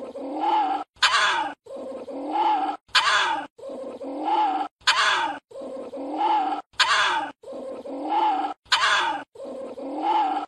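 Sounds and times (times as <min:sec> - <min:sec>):
civet moaning calls: 0:00.0 - 0:10.4.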